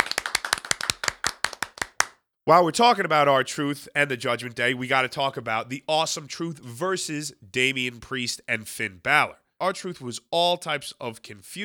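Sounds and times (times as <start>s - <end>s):
applause: 0.0s - 2.2s
speech: 2.5s - 11.6s.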